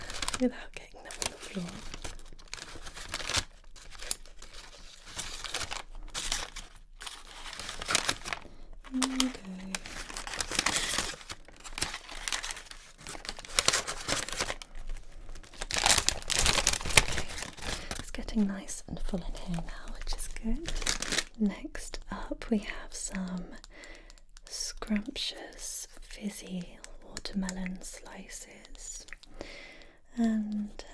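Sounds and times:
plastic bag crinkling as sweets are dropped in: 0.0 - 21.4
speech: 0.4 - 0.9, 1.5 - 1.9, 18.4 - 20.8, 21.4 - 23.5, 24.9 - 28.6, 30.2 - 30.4.

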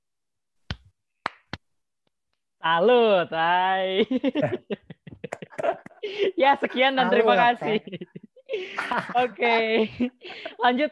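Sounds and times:
rhythmic hand claps: 0.7 - 1.6
speech: 2.6 - 4.8, 6.1 - 10.9
laughter: 4.0 - 10.9.

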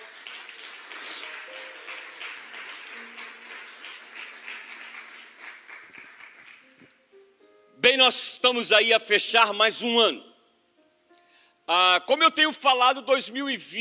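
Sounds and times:
audience applause: 0.0 - 6.8
speech: 8.0 - 10.3, 11.7 - 13.7.

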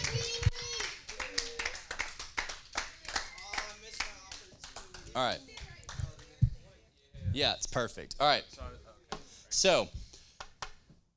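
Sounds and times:
audience applause: 0.0 - 6.0
speech: 5.2 - 5.5, 7.4 - 8.8, 9.6 - 10.0.

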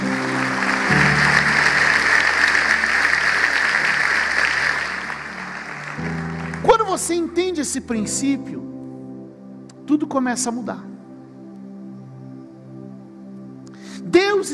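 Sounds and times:
audience applause: 0.0 - 7.2
speech: 7.1 - 8.8, 9.9 - 10.9.

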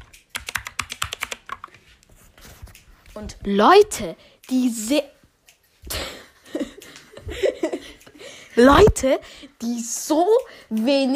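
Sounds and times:
typing on a computer keyboard: 0.0 - 1.8
speech: 3.2 - 5.2, 8.6 - 11.1
laughter: 6.0 - 8.5.

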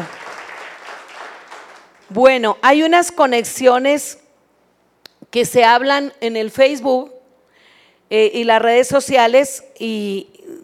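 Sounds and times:
audience applause: 0.0 - 2.1
speech: 2.1 - 4.2, 5.3 - 7.2, 8.1 - 10.6.

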